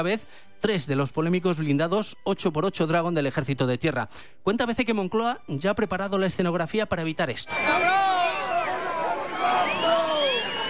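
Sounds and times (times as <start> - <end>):
speech: 0.0 - 8.1
crowd booing at a military parade: 7.5 - 10.6.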